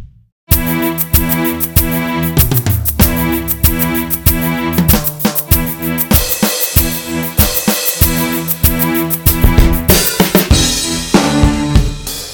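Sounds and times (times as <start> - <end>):
rock with strings: 0.5 - 12.3.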